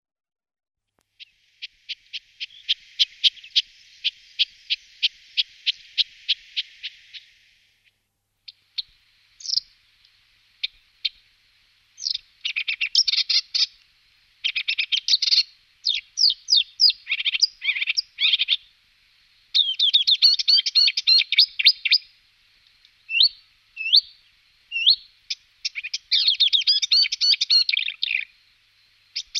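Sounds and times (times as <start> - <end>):
marsh warbler singing: 1.2 - 7.5, 8.5 - 9.8, 12.0 - 13.8, 14.4 - 18.7, 19.5 - 22.1, 23.1 - 29.3.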